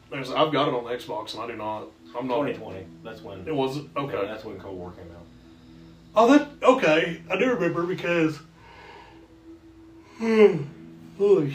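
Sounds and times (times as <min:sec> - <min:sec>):
speech: 0:00.1 - 0:05.4, 0:06.1 - 0:08.5, 0:10.2 - 0:11.5
yawning: 0:08.4 - 0:11.0.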